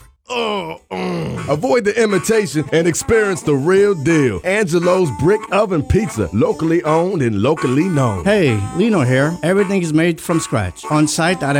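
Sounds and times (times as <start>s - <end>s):
voice imitating a stomach groaning after eating at a chain pizza shop: 0.0s - 1.8s, 8.2s - 8.8s
speech: 0.3s - 0.9s, 1.5s - 11.5s.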